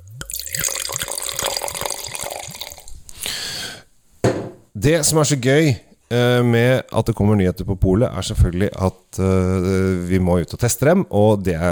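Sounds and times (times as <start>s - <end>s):
wine being poured into a glass: 0.0s - 3.0s
speech: 4.8s - 11.6s.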